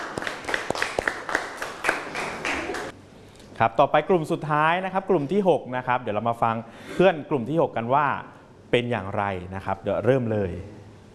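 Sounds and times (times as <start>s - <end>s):
group of people clapping: 0.0s - 3.0s
speech: 3.6s - 10.8s.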